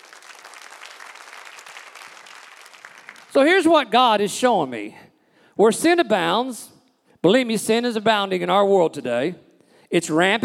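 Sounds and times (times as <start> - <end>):
hand clapping: 0.0 - 3.5
speech: 3.3 - 5.0, 5.6 - 10.4.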